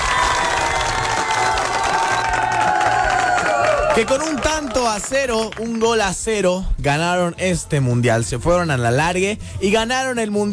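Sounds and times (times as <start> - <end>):
shouts and whistles: 0.0 - 4.4
crowd applauding: 0.0 - 6.3
speech: 4.0 - 10.5.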